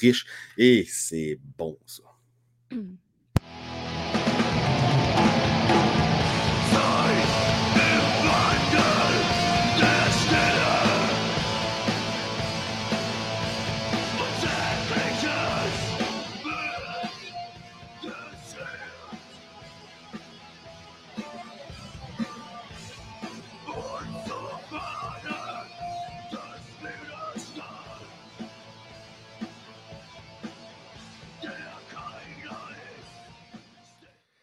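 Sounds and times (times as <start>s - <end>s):
speech: 0.0s - 2.1s, 2.7s - 3.6s
driving guitar: 3.4s - 34.0s
rock song: 3.4s - 34.0s
shouted strained vocals: 6.7s - 11.4s, 14.1s - 17.0s.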